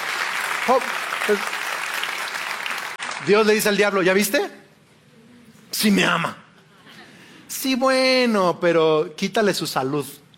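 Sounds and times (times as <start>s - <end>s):
church audience applauding: 0.0s - 3.8s
speech: 0.7s - 1.6s, 3.2s - 4.6s, 5.7s - 6.4s, 7.5s - 10.2s.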